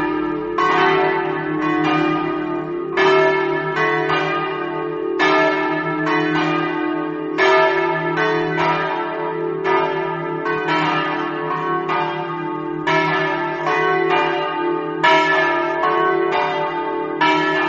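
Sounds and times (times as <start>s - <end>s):
bells ringing in Villavicentina: 0.0s - 17.6s.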